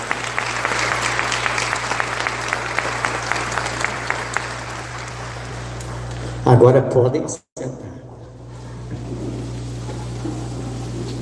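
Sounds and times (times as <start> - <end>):
audience applauding in a large room: 0.0 - 6.4
low steady hum: 0.0 - 11.2
speech: 6.5 - 7.5.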